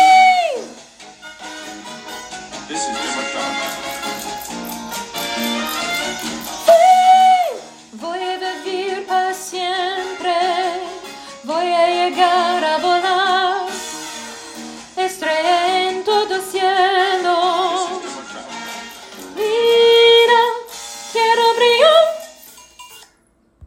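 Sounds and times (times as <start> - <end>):
soprano singing: 6.6 - 13.8, 15.0 - 18.1, 19.3 - 22.3.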